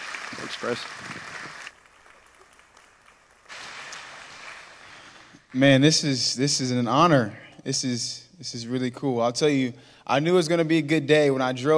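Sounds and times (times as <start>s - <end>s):
audience applause: 0.0s - 5.2s
speech: 0.3s - 1.6s, 5.5s - 11.7s.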